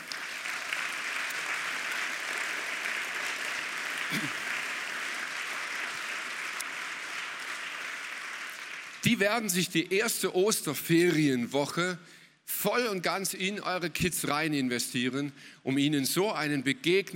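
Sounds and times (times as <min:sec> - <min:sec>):
audience applause: 0:00.0 - 0:09.5
speech: 0:04.1 - 0:04.4, 0:09.1 - 0:17.1.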